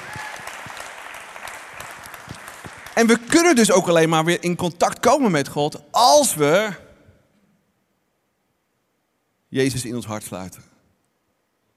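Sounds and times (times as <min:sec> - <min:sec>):
audience applause: 0:00.0 - 0:03.6
speech: 0:03.0 - 0:06.8, 0:09.5 - 0:10.7.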